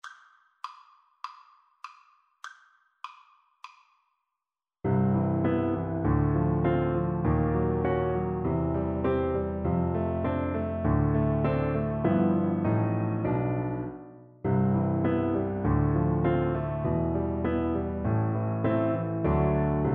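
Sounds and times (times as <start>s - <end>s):
piano duet: 4.9s - 19.9s.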